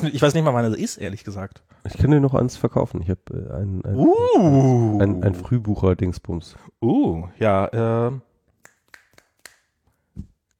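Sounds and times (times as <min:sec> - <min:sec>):
speech: 0:00.0 - 0:08.3
finger snap: 0:08.5 - 0:10.5.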